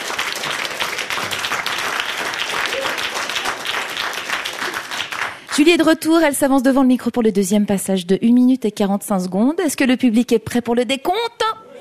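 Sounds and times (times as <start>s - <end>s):
audience applause: 0.0s - 5.7s
speech: 5.7s - 11.6s.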